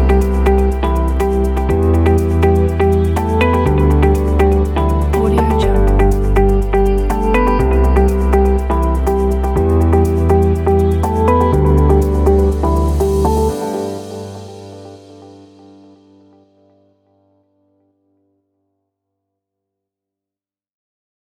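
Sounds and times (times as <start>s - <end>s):
corporate music: 0.0s - 16.8s.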